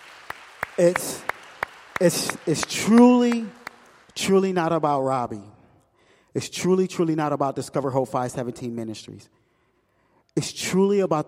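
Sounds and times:
rhythmic clapping: 0.0 - 4.9
speech: 0.8 - 1.3, 2.0 - 3.6, 4.2 - 5.6, 6.4 - 9.4, 10.4 - 11.2.

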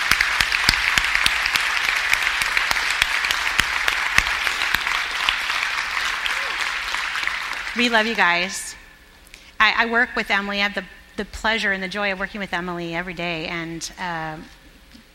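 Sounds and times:
round of applause from a crowd: 0.0 - 8.2
speech: 7.8 - 8.8, 9.6 - 14.6.

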